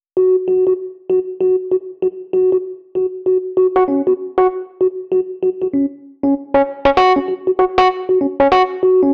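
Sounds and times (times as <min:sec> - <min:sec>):
Rhodes cinematic funk music: 0:00.2 - 0:09.1.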